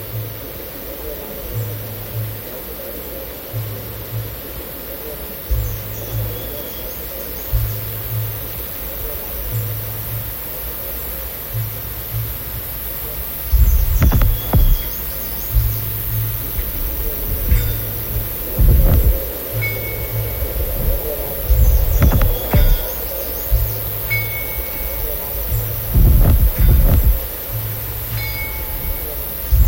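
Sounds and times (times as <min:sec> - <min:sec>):
steady hiss: 0:00.0 - 0:29.6
soft low thumps: 0:05.5 - 0:06.6, 0:07.5 - 0:10.6, 0:11.5 - 0:12.9, 0:13.5 - 0:29.6
louder knocks and clatters: 0:13.8 - 0:14.9, 0:21.5 - 0:22.9
brief high chime-like tones: 0:17.5 - 0:20.5, 0:24.0 - 0:27.2, 0:28.1 - 0:29.1.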